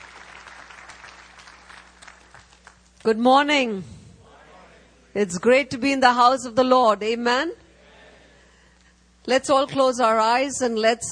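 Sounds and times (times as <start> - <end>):
church congregation applauding a guest at a morning service: 0.0 - 3.0
speech: 3.0 - 4.0, 5.2 - 7.6, 9.2 - 11.1.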